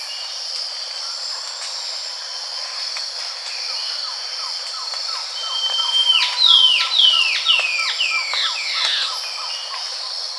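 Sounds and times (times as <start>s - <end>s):
bird whistling: 5.4s - 9.1s.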